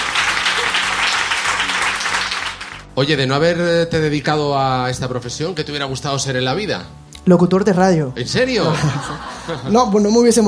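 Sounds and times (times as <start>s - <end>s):
audience applause: 0.0s - 3.0s
laughter: 0.3s - 1.9s, 8.4s - 10.0s
speech: 3.0s - 10.4s.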